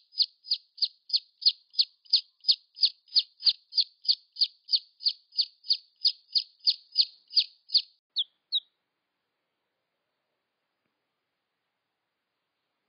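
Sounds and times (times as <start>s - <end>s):
red junglefowl chick peeps: 0.0s - 8.7s.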